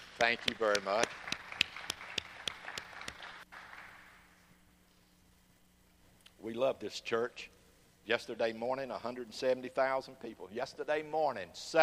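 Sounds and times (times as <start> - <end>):
crowd applause: 0.0 - 4.2
speech: 0.2 - 1.3, 6.4 - 11.8.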